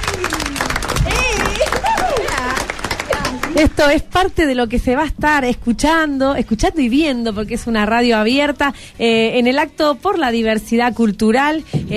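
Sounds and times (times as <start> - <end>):
people calling out and cheering: 0.0 - 3.7
audience applause: 0.0 - 3.8
speech: 3.6 - 11.9.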